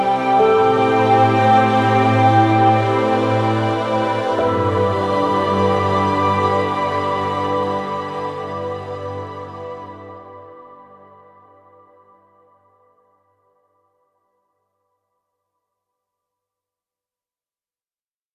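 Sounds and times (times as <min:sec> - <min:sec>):
ambient music: 0:00.0 - 0:13.5.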